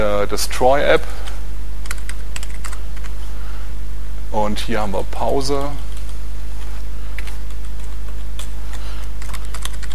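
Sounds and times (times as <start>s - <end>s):
speech: 0.0s - 1.3s, 4.3s - 5.9s
loud steady low hum: 0.0s - 9.9s
computer keyboard typing code: 1.8s - 3.2s, 5.2s - 9.9s.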